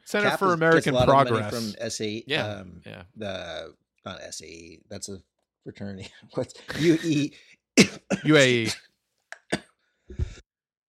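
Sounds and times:
speech: 0:00.1 - 0:08.9
person coughing: 0:06.7 - 0:08.8.

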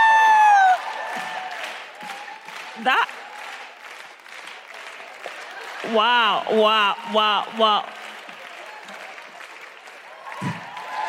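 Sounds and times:
hand clapping: 0:00.8 - 0:05.9, 0:07.7 - 0:11.0
speech: 0:02.8 - 0:03.2, 0:05.9 - 0:08.0.

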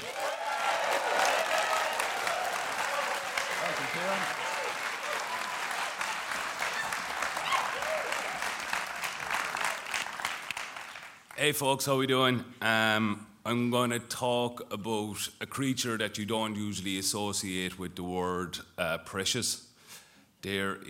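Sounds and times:
big audience applause: 0:00.0 - 0:11.4
speech: 0:11.4 - 0:19.7, 0:20.4 - 0:20.8.

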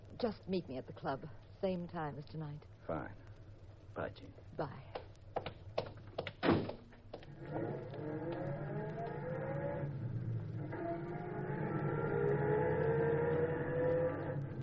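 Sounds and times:
speech: 0:00.2 - 0:03.2, 0:04.0 - 0:05.0
taxi cab engine drone along the bay: 0:07.2 - 0:14.6
wavering tonal whine: 0:07.3 - 0:14.6.

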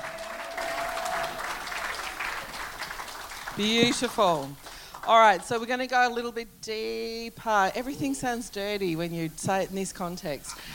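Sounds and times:
audience applause: 0:00.0 - 0:05.4
speech: 0:03.6 - 0:10.7.

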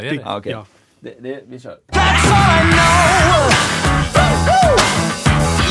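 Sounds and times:
speech: 0:00.0 - 0:03.8
podcast jingle: 0:01.9 - 0:05.6.

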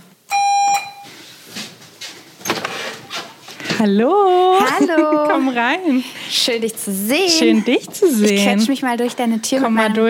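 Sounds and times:
electronic doorbell ringing: 0:00.3 - 0:01.1
soft rustling and shuffling: 0:01.0 - 0:09.3
speech: 0:03.8 - 0:10.0
laughter: 0:04.4 - 0:06.0.

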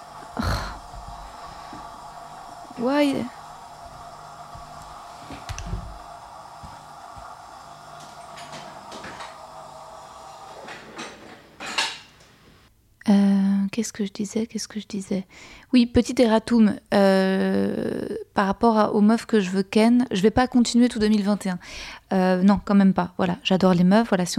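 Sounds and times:
dishwasher starting up and running: 0:00.0 - 0:12.7
speech: 0:02.8 - 0:03.4, 0:13.8 - 0:24.3.

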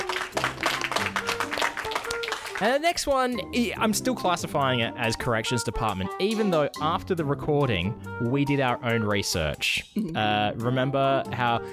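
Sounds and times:
applause: 0:00.0 - 0:03.2
speech: 0:02.6 - 0:11.7.

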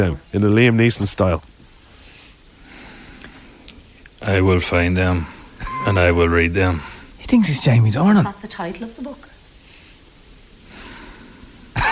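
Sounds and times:
speech: 0:00.0 - 0:01.6, 0:04.2 - 0:09.3
heavy breathing into a microphone: 0:01.8 - 0:03.7, 0:09.6 - 0:11.7.

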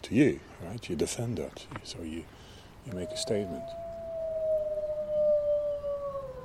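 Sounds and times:
speech: 0:00.1 - 0:03.8
wolf howling: 0:02.9 - 0:06.4.

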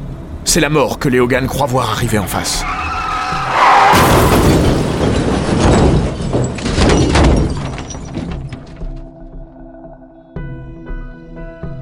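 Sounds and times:
speech: 0:00.5 - 0:02.8
head-on collision of car and bus: 0:02.6 - 0:09.2.

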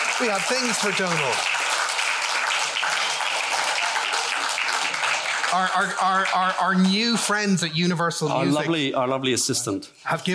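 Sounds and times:
audience applause: 0:00.0 - 0:07.7
speech: 0:00.2 - 0:01.6, 0:05.5 - 0:10.3.

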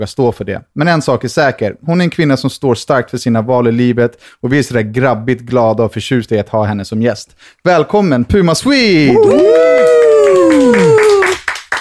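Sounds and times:
speech: 0:00.0 - 0:11.0
applause: 0:09.1 - 0:11.7.

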